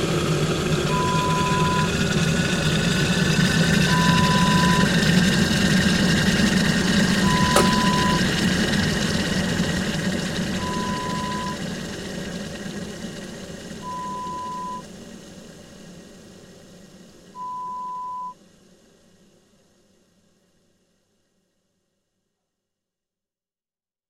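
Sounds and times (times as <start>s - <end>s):
electric kettle: 0.0s - 14.8s.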